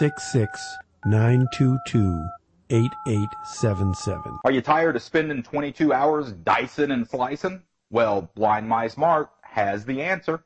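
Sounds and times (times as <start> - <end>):
telephone keypad dialing tones: 0.0 - 4.4
speech: 0.0 - 10.4.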